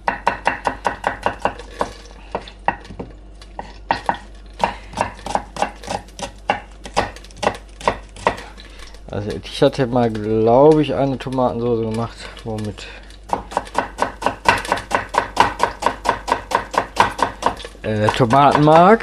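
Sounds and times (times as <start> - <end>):
knife dicing an onion on a cutting board: 0.0 - 3.0, 3.6 - 8.5, 13.3 - 19.0
speech: 9.2 - 13.0, 17.9 - 19.0.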